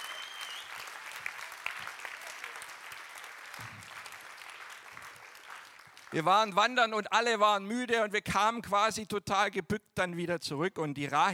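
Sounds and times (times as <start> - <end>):
audience applause: 0.0 - 6.2
speech: 6.1 - 11.3.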